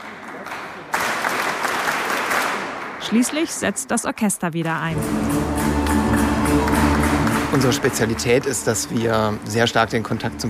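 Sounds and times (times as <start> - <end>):
audience clapping: 0.0 - 3.6, 5.0 - 10.3
speech: 3.1 - 5.4, 7.6 - 10.4
audience drumming body percussion: 4.9 - 9.2.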